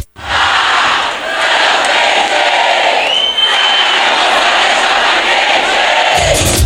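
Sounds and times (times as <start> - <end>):
large crowd of football supporters chanting at a stadium: 0.2 - 6.6
whistles in a football crowd: 3.0 - 4.2.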